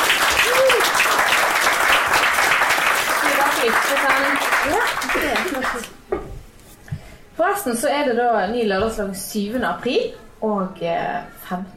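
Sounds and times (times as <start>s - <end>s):
audience applause: 0.0s - 6.0s
speech: 7.6s - 11.7s.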